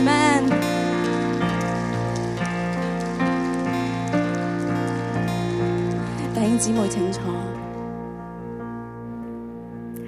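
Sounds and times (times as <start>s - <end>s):
crowd applause: 0.0s - 7.9s
sustained keyboard chords: 0.0s - 10.0s
speech: 6.6s - 7.4s.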